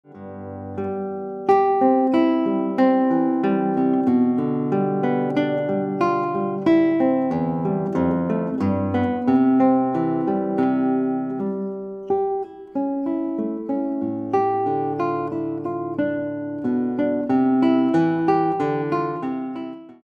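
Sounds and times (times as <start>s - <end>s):
guitar: 0.0s - 20.0s.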